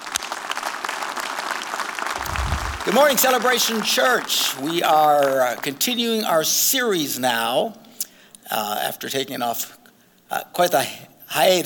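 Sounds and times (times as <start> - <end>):
church congregation applauding: 0.0 - 6.7
speech: 2.8 - 7.8, 8.5 - 11.6.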